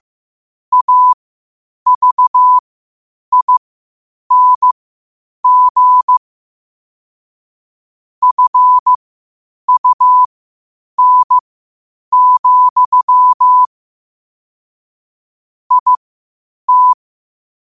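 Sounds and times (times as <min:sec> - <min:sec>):
morse code at 5 wpm: 0:00.7 - 0:01.2, 0:01.9 - 0:02.6, 0:03.3 - 0:03.6, 0:04.3 - 0:04.8, 0:05.4 - 0:06.2, 0:08.2 - 0:09.0, 0:09.7 - 0:10.3, 0:11.0 - 0:11.4, 0:12.1 - 0:13.7, 0:15.7 - 0:16.0, 0:16.7 - 0:17.0.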